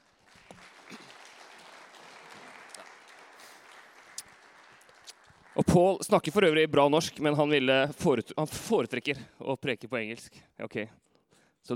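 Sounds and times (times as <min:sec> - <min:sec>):
audience applause: 0:00.0 - 0:06.1
speech: 0:05.6 - 0:11.7.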